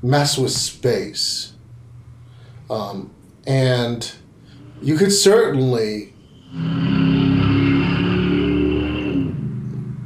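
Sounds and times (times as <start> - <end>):
speech: 0.0 - 1.6, 2.7 - 4.2, 4.8 - 7.0
car engine revving in drag racing: 6.4 - 10.0.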